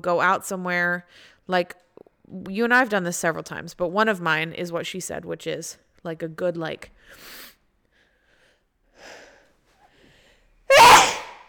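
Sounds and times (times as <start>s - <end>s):
speech: 0.0s - 7.4s
sneeze: 10.7s - 11.4s.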